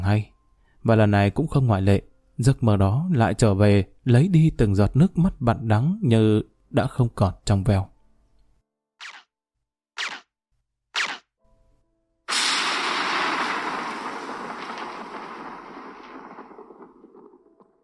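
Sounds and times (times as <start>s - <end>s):
speech: 0.0s - 7.9s
silenced gunshot: 12.3s - 17.4s
rolling thunder: 12.3s - 17.8s.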